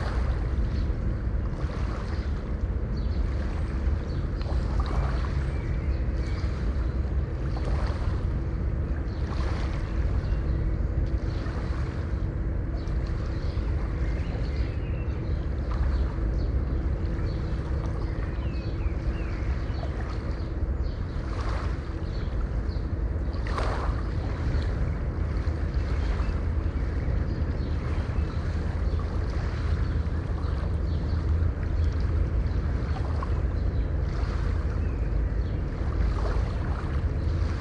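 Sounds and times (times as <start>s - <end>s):
sea harbour noise: 0.0s - 37.5s.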